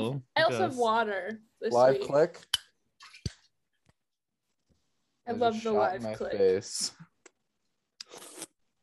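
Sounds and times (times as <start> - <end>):
speech: 0.2 - 2.5, 5.3 - 7.1
slurping an energy drink: 8.0 - 8.6.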